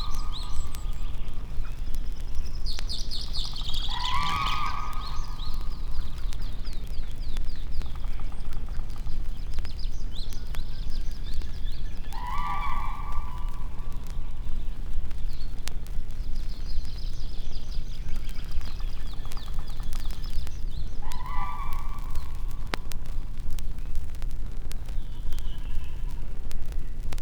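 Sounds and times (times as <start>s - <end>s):
bird voices in nature: 0.0s - 24.1s, 24.7s - 27.1s.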